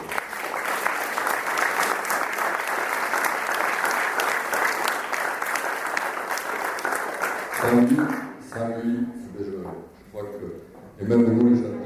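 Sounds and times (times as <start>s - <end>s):
audience applauding: 0.0s - 8.8s
speech: 7.7s - 9.5s, 11.0s - 11.7s.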